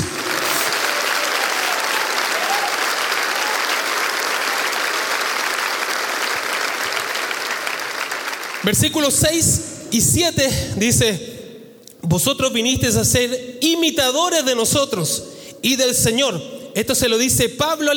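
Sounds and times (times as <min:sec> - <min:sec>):
audience applause: 0:00.0 - 0:08.8
speech: 0:08.6 - 0:11.3, 0:12.1 - 0:17.9.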